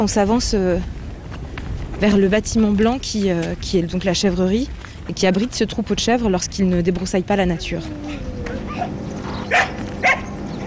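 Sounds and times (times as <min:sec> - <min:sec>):
speech: 0:00.0 - 0:01.0, 0:02.0 - 0:08.3
steady low hum: 0:02.0 - 0:10.6
sheepdog barking at a goat farm: 0:08.0 - 0:10.6.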